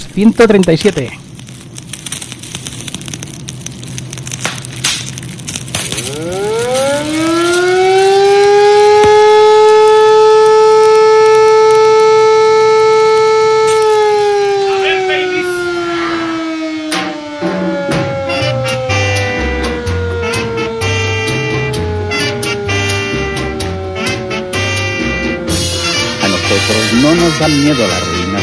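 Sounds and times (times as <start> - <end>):
faint crackling: 0.0 - 28.4
speech: 0.2 - 1.2
alarm siren wailing: 5.8 - 28.4.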